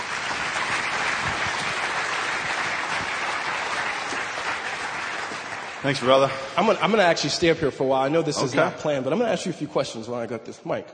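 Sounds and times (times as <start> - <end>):
audience applause welcoming a speaker on stage: 0.0 - 7.3
speech: 5.8 - 10.9.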